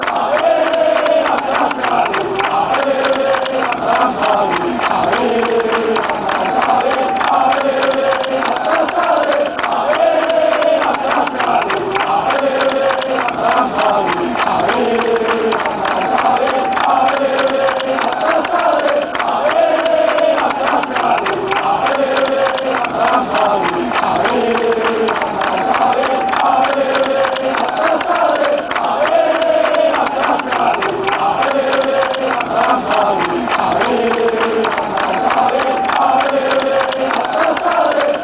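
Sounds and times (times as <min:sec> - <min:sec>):
fans chanting: 0:00.0 - 0:38.2.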